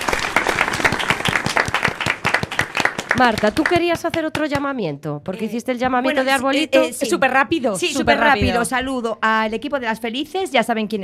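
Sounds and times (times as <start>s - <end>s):
audience applause: 0.0s - 4.3s
speech: 3.2s - 11.0s.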